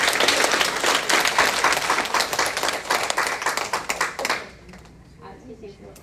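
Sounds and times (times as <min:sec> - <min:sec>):
crowd applauding: 0:00.0 - 0:04.6.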